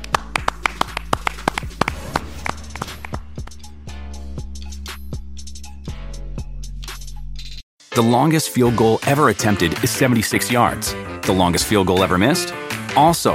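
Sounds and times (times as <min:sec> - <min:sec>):
clapping: 0:00.0 - 0:03.6
speech: 0:08.0 - 0:13.3.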